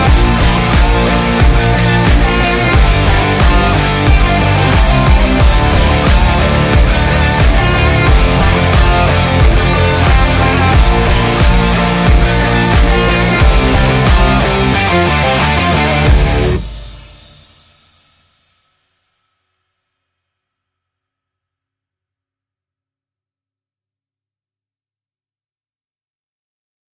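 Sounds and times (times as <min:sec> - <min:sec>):
commercial rock music: 0:00.0 - 0:17.6.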